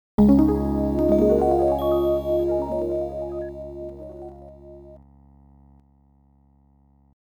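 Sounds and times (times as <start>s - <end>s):
game start sound: 0.2s - 5.0s.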